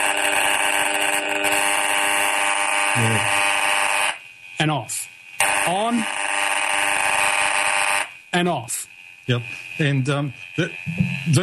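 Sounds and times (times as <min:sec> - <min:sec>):
RF meter buzzing near cordless phone: 0:00.0 - 0:11.4
speech: 0:04.6 - 0:06.2, 0:08.4 - 0:11.4.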